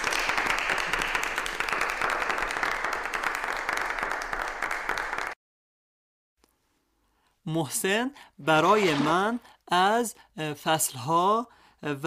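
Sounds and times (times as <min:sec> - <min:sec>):
group hand clapping: 0:00.0 - 0:05.4
speech: 0:07.5 - 0:12.0.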